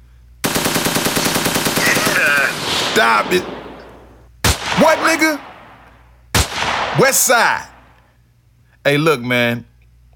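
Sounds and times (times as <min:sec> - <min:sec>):
machine gun fire: 0:00.4 - 0:07.9
speech: 0:03.0 - 0:03.6, 0:04.8 - 0:05.5, 0:07.0 - 0:07.7, 0:08.8 - 0:09.7.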